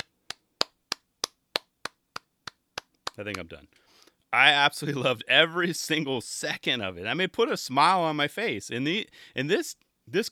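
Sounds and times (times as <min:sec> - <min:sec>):
long clap: 0:00.0 - 0:03.6
speech: 0:03.2 - 0:10.3.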